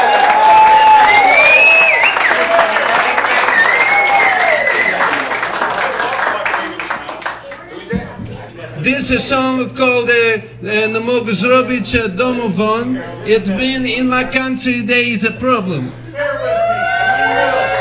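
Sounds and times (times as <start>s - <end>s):
audience applause and cheering: 0.0s - 7.7s, 16.2s - 17.7s
speech: 9.1s - 16.0s.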